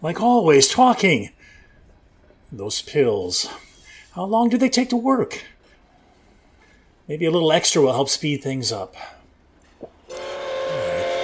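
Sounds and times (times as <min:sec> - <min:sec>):
speech: 0:00.0 - 0:01.6, 0:02.5 - 0:05.5, 0:07.1 - 0:09.2
train passing: 0:10.1 - 0:11.2.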